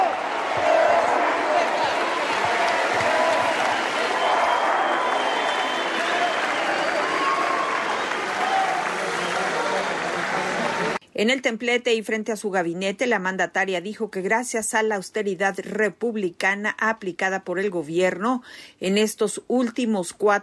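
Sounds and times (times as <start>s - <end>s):
large crowd in an auditorium cheering and applauding: 0.0s - 11.0s
speech: 11.2s - 20.4s.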